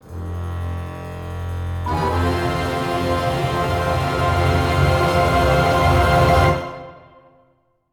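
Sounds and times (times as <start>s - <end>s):
musical stinger: 1.9s - 7.4s.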